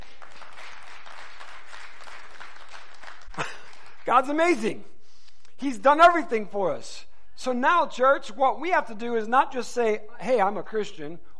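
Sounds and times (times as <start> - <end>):
church audience applause: 0.0 - 4.2
speech: 4.1 - 4.9, 5.6 - 11.3.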